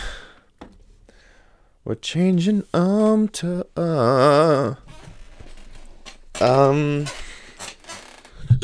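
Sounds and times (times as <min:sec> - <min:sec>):
speech: 0:01.9 - 0:04.9, 0:06.4 - 0:07.2
squeaky chair creaking: 0:04.8 - 0:08.4.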